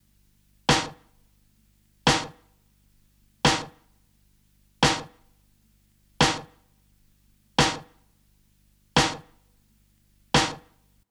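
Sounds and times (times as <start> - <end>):
snare drum: 0.7 - 1.1, 2.1 - 2.4, 3.5 - 3.8, 4.8 - 5.2, 6.2 - 6.6, 7.6 - 8.0, 9.0 - 9.4, 10.4 - 10.8.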